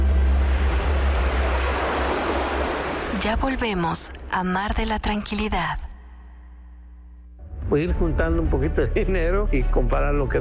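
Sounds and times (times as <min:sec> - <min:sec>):
ocean waves washing onto the shore: 0:00.0 - 0:03.8
speech: 0:03.2 - 0:05.9, 0:07.7 - 0:10.4.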